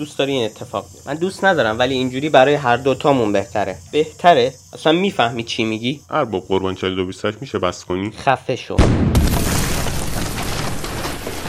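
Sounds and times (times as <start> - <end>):
speech: 0.0 - 9.1
robot exploding: 8.8 - 11.4.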